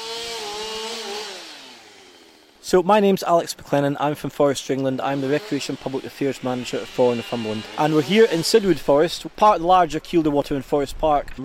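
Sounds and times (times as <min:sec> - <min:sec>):
chainsaws clearing fallen trees from footpaths in Sidwood Forest, Northumberland: 0:00.0 - 0:02.8, 0:04.2 - 0:09.8
speech: 0:02.7 - 0:11.4.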